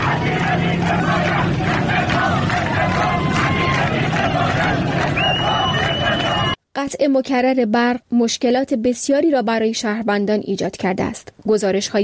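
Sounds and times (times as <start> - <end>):
crowd of protesters chanting slogans in unison: 0.0 - 6.6
high whistle-like tone: 5.2 - 6.6
speech: 6.8 - 12.0.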